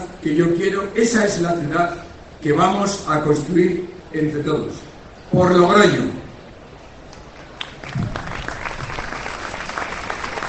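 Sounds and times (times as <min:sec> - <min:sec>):
speech: 0:00.2 - 0:06.2
crowd applause: 0:07.4 - 0:10.4.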